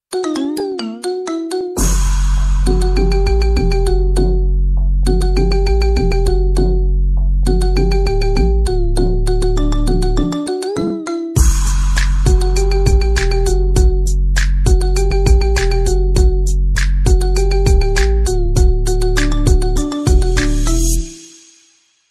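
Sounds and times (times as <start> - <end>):
marimba remix iPhone ringtone: 0.1 - 4.5, 5.1 - 6.9, 7.5 - 21.4.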